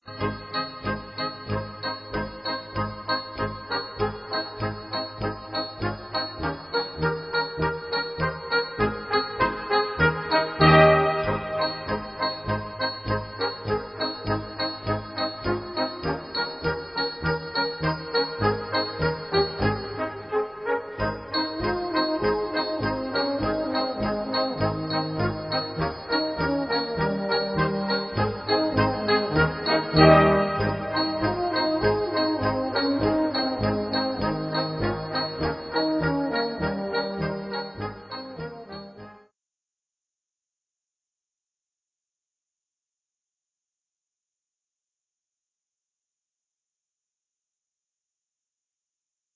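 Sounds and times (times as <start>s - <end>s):
polka music: 0.2s - 39.2s.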